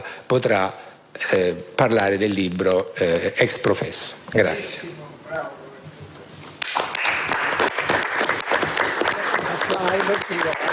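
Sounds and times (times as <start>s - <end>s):
speech: 0.3s - 5.6s
audience applause: 6.6s - 10.7s.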